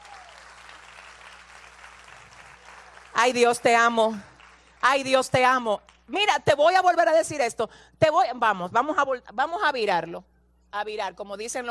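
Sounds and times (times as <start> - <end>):
audience applause: 0.0 - 3.2
speech: 3.2 - 11.6.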